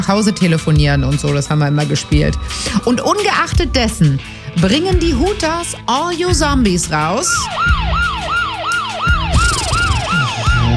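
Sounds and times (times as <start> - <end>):
speech: 0.0 - 7.8
police siren sound effect wailing: 7.2 - 10.7.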